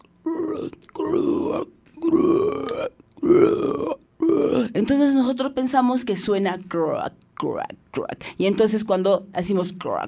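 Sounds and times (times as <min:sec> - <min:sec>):
voice imitating a toad's croak: 0:00.0 - 0:04.8
speech: 0:00.3 - 0:02.4, 0:05.0 - 0:10.0.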